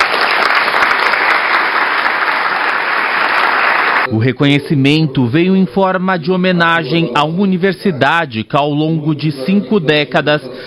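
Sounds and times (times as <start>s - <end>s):
applause in a packed legislative chamber: 0.0s - 4.1s
speech: 4.2s - 10.6s.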